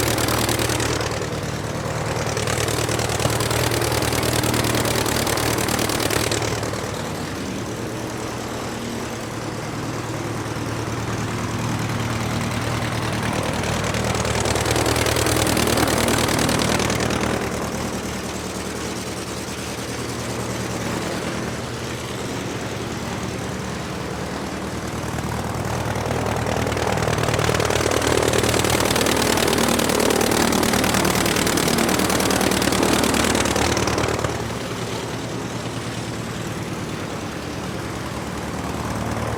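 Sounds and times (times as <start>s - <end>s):
aircraft motor running: 0.0s - 39.3s.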